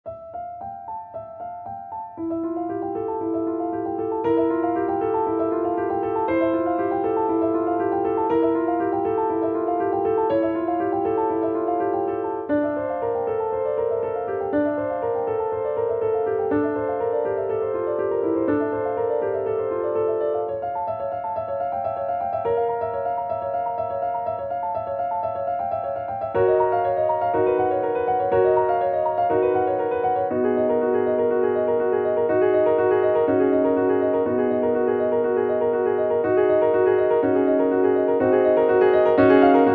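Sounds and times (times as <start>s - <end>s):
piano: 0.0s - 39.7s.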